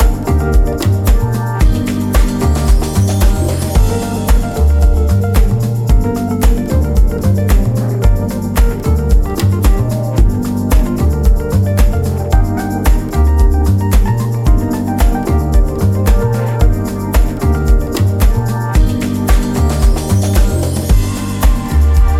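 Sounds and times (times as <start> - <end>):
cool urban groove music: 0.0 - 22.1.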